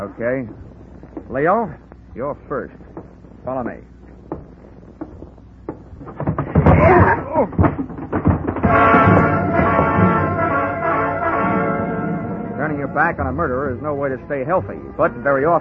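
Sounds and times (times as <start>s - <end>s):
speech: 0.0s - 3.9s, 7.4s - 7.9s, 13.0s - 15.5s
knocks and thumps: 2.8s - 13.6s
heavy fall of a man knocked down: 5.8s - 13.9s
door bursting open: 6.0s - 13.1s
sustained tonal swell: 8.7s - 15.5s.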